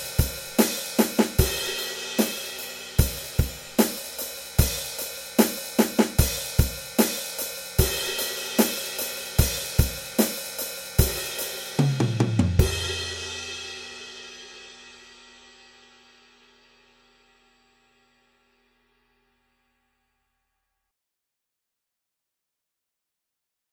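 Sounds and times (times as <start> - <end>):
drums: 0.0 - 17.3.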